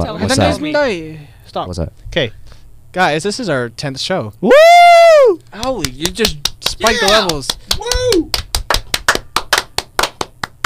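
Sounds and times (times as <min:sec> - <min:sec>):
speech: 0:00.0 - 0:08.4
hand claps: 0:05.6 - 0:10.6.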